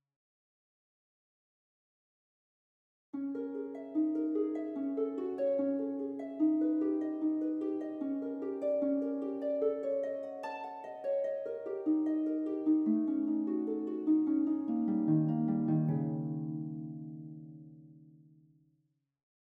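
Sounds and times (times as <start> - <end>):
harp: 3.2 - 18.4.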